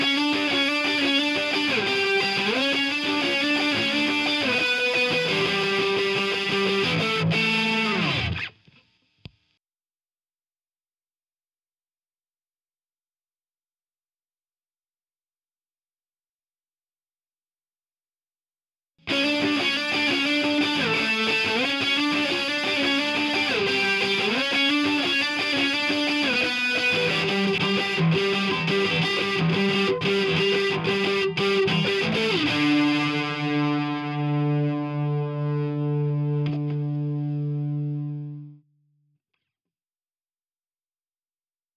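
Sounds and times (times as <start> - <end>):
lead guitars: 0.0 - 8.6, 19.1 - 38.6.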